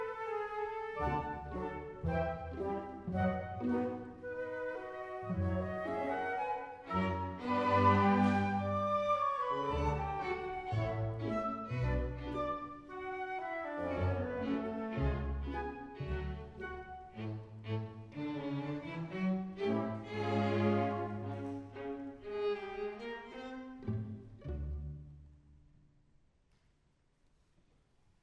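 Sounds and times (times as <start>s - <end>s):
classical music: 0.0s - 28.2s.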